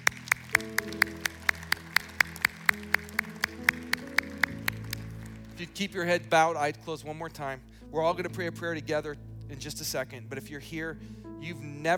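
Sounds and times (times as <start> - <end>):
audience clapping: 0.0 - 6.1
speech: 5.6 - 11.9.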